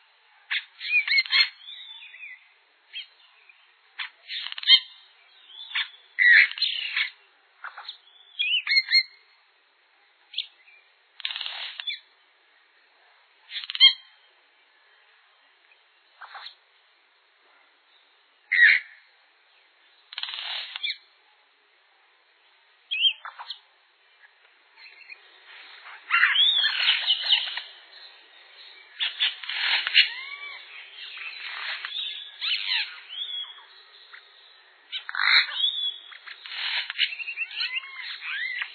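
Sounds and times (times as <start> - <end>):
Yellow-rumped cacique calling chacks and whistles: 0.5 - 3.2, 4.0 - 9.2, 11.2 - 12.1, 13.5 - 14.1, 18.5 - 19.1, 20.1 - 21.1, 22.9 - 23.7, 25.8 - 38.7.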